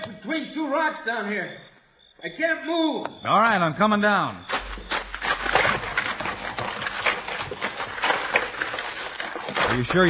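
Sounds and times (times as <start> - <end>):
speech: 0.2 - 4.5, 9.7 - 10.0
horse hooves galloping over gritty ground: 4.5 - 10.0.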